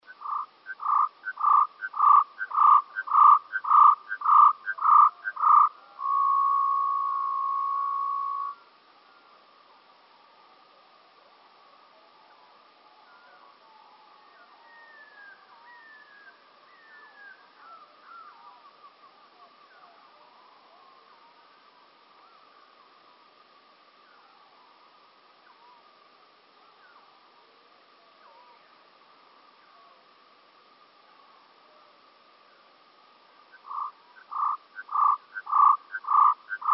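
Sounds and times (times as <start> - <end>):
bunting singing: 0.0 - 8.6, 33.5 - 36.7.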